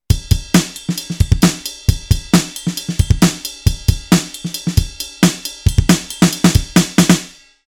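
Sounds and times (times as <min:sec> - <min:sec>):
drums: 0:00.0 - 0:07.6.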